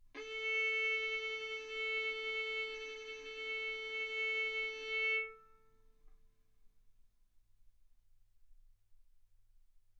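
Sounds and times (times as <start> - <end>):
violin arco on A string: 0.2 - 5.6.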